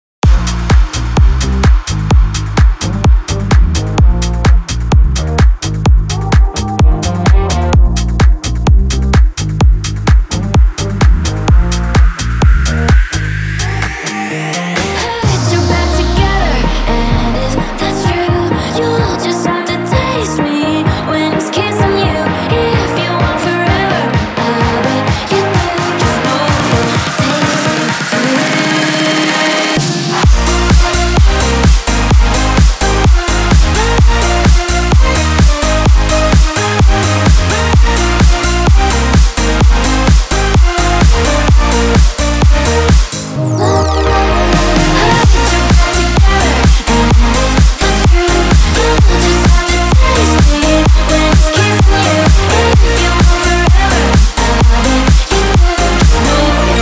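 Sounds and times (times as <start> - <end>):
progressive breaker music at 128 bpm: 0.2 - 56.8.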